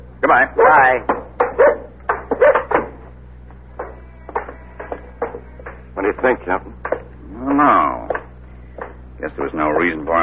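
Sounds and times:
speech: 0.3 - 1.8, 6.0 - 6.9, 7.5 - 8.1, 9.2 - 10.2
dog barking: 0.6 - 2.9.

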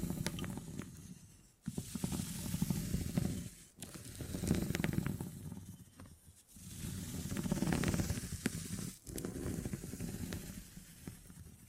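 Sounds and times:
beeswax being handled crackling and rubbing: 0.0 - 11.6.

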